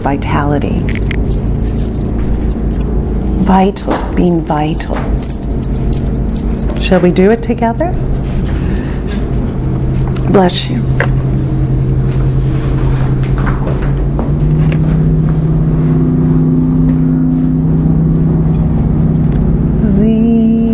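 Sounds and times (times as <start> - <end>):
speech: 0.0 - 1.1, 3.5 - 5.4, 6.8 - 8.2, 10.3 - 11.1
faint clinks and rattles: 0.6 - 12.2, 17.7 - 19.7
car motor running: 0.6 - 20.7.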